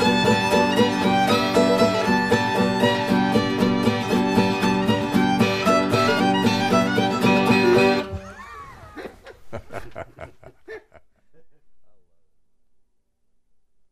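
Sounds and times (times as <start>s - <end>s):
instrumental music: 0.0s - 8.4s
laughter: 8.0s - 11.7s.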